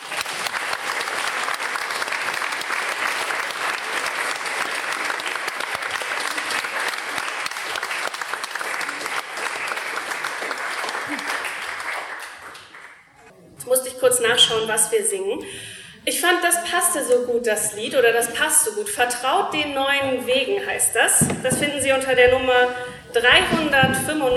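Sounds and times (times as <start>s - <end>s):
audience clapping: 0.0s - 13.3s
speech: 14.2s - 24.3s.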